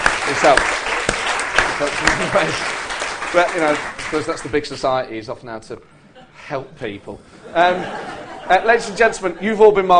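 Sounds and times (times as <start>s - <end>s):
audience round of applause: 0.0s - 4.8s
speech: 0.4s - 0.8s, 1.8s - 9.9s
laughter: 1.8s - 2.8s, 7.4s - 9.9s.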